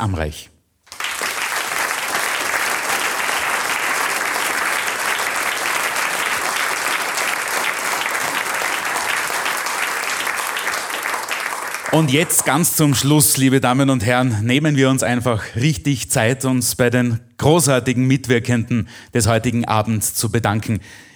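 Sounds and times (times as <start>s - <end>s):
speech: 0.0s - 0.5s, 11.9s - 21.1s
audience applause: 0.9s - 12.7s.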